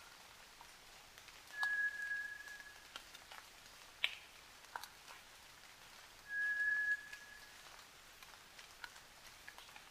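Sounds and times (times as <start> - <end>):
White's thrush singing flat drawn-out whistles at night: 1.6 - 2.8, 6.3 - 7.4.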